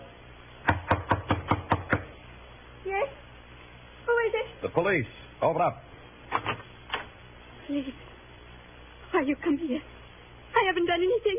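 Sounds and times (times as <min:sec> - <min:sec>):
sharp firm knocks on a door: 0:00.7 - 0:02.1
speech: 0:04.7 - 0:06.7, 0:07.7 - 0:08.1, 0:09.1 - 0:09.9, 0:10.6 - 0:11.3.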